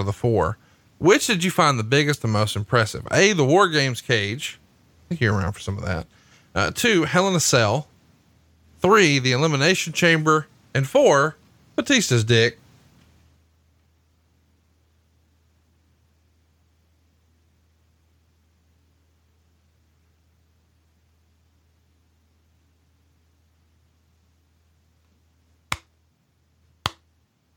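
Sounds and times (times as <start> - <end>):
speech: 0.0 - 7.9, 8.8 - 12.6
slow clap: 26.8 - 27.1.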